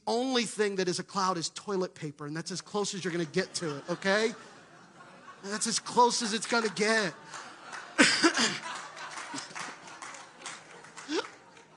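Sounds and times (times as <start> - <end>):
speech: 0.1 - 4.5, 5.4 - 8.7
audience laughter: 3.1 - 11.7
audience clapping: 5.6 - 11.7.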